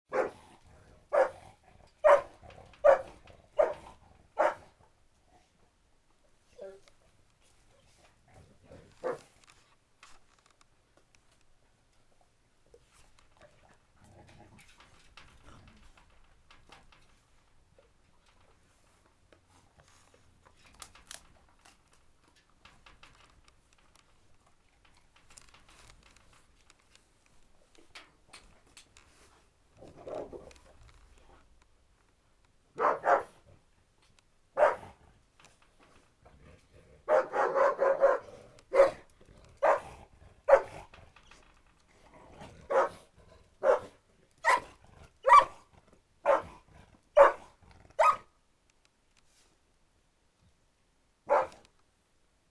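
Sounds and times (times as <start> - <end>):
menacing dog barking: 0.1 - 0.5, 1.1 - 4.8, 9.0 - 9.3, 32.8 - 33.4, 34.6 - 35.0, 37.0 - 40.8, 42.6 - 46.6, 47.2 - 48.3, 51.3 - 51.6.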